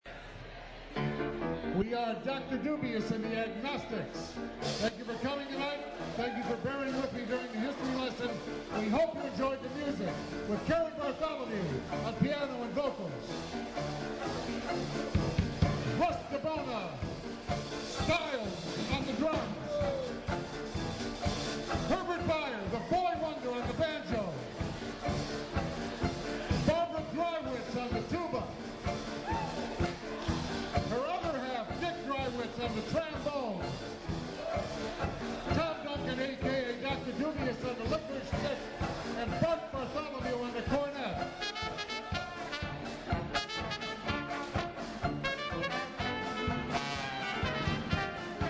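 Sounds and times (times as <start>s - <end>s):
dixieland jazz: 1.1s - 48.4s.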